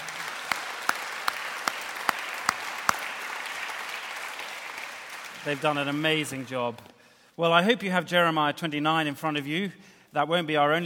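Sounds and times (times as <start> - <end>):
audience applause: 0.0 - 6.8
speech: 5.4 - 10.8.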